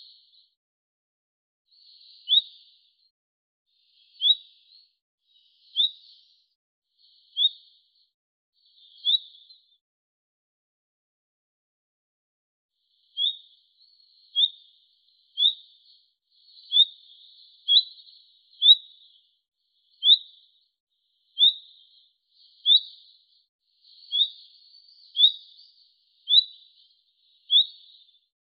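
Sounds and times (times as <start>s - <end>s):
bird giving short high upward-sweeping chirps: 0.0s - 0.6s, 1.7s - 3.1s, 3.8s - 9.8s, 12.9s - 28.4s.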